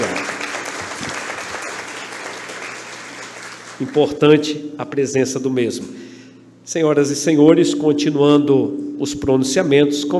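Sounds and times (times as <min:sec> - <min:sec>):
applause: 0:00.0 - 0:04.2
speech: 0:03.8 - 0:06.1, 0:06.7 - 0:10.1.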